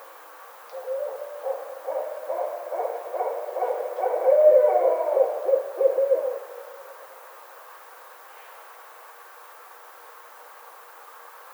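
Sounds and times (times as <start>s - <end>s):
Barred owl calls of low hoots and cackling notes: 0.7s - 7.4s.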